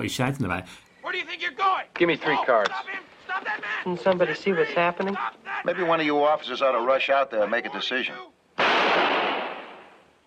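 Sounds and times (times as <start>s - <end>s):
speech: 0.0s - 3.0s, 3.8s - 8.3s
gunshot: 8.6s - 10.0s.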